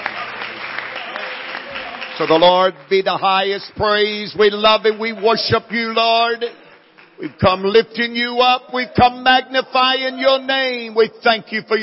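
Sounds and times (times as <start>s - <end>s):
audience clapping: 0.0s - 9.0s
speech: 2.2s - 6.6s, 7.2s - 11.8s.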